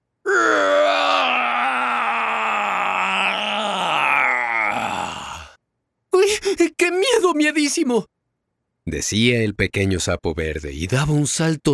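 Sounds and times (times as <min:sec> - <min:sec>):
loud pained growl: 0:00.3 - 0:05.6
speech: 0:07.3 - 0:08.1, 0:08.9 - 0:11.7.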